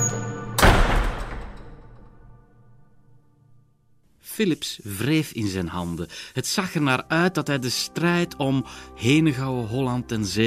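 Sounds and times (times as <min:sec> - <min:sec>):
heavy door slamming shut: 0:00.1 - 0:02.4
speech: 0:04.4 - 0:10.4.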